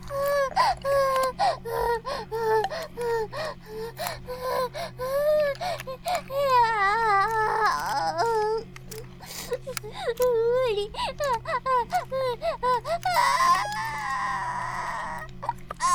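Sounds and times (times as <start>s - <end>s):
vibrator left buzzing: 0.0s - 15.9s.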